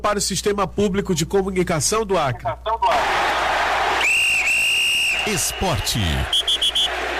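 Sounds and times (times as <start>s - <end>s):
speech: 0.0s - 3.2s, 5.2s - 6.4s
whistle blowing: 4.0s - 7.0s.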